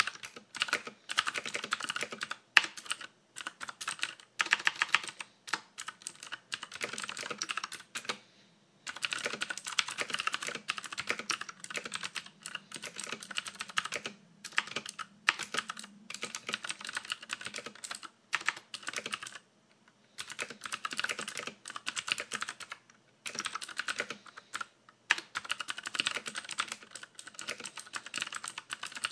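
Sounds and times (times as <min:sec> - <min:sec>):
new clicky keyboard keys: 0:00.0 - 0:08.2, 0:08.9 - 0:19.4, 0:20.2 - 0:29.1.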